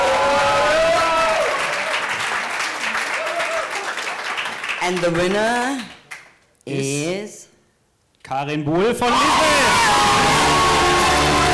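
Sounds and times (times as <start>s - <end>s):
audience clapping: 0.0s - 6.4s, 10.0s - 11.5s
speech: 4.9s - 6.0s, 6.6s - 7.4s, 8.3s - 10.7s.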